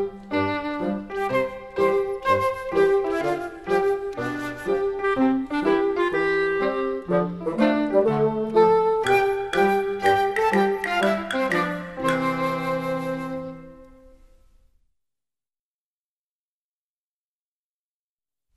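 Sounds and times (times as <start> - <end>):
children's song music: 0.0 - 14.5.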